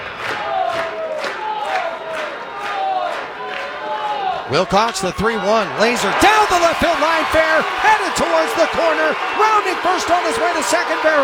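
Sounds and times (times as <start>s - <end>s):
raucous stadium crowd cheering: 0.0s - 11.2s
speech: 4.5s - 11.2s.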